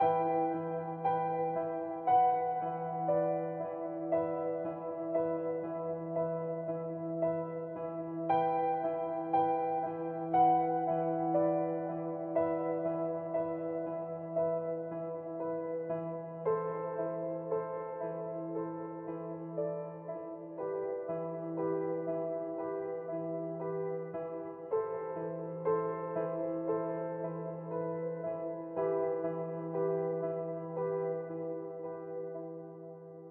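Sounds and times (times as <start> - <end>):
sad piano music layer: 0.0 - 33.2.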